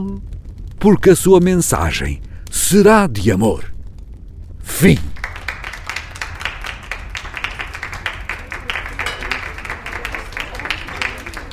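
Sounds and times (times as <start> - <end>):
speech: 0.0 - 3.7, 4.8 - 5.1
applause in a room: 4.8 - 11.5.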